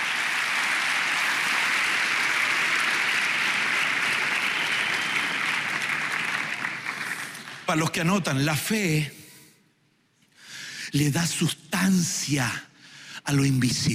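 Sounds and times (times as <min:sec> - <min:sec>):
audience applause: 0:00.0 - 0:08.0
speech: 0:07.7 - 0:09.2, 0:10.9 - 0:12.7, 0:13.3 - 0:13.9.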